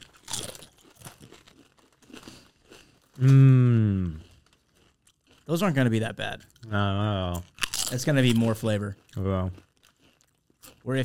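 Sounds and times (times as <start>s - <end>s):
crunching on Flamin' Hot tortilla chips: 0.0s - 11.0s
speech: 3.2s - 3.7s, 5.5s - 9.7s, 10.8s - 11.0s.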